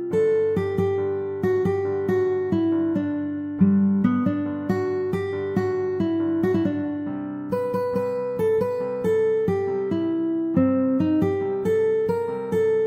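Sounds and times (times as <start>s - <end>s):
guitar: 0.0s - 12.8s.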